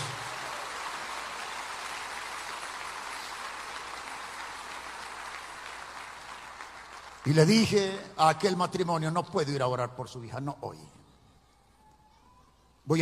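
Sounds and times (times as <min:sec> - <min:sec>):
crowd applause: 0:00.0 - 0:07.5
speech: 0:07.2 - 0:11.0.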